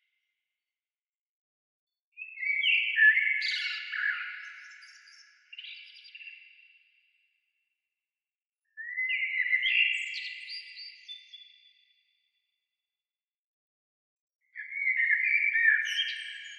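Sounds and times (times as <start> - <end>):
bird singing twittering phrases: 2.2 - 6.5, 8.8 - 11.6, 14.6 - 16.5.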